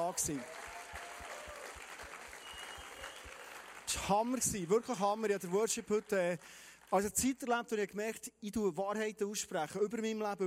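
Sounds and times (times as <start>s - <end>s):
speech: 0.0s - 0.6s, 3.9s - 10.4s
audience applause for a band: 0.0s - 7.0s.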